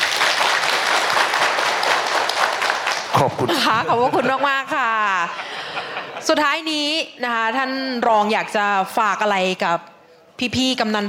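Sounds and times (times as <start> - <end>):
audience applause: 0.0 - 3.8
laughter: 3.0 - 6.4
speech: 3.2 - 11.0.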